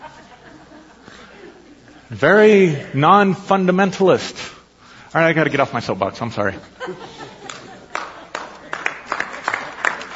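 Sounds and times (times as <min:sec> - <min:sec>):
laughter: 0:00.0 - 0:02.0, 0:06.5 - 0:10.1
speech: 0:02.1 - 0:04.4, 0:05.1 - 0:07.1
scattered audience clapping: 0:07.5 - 0:10.1.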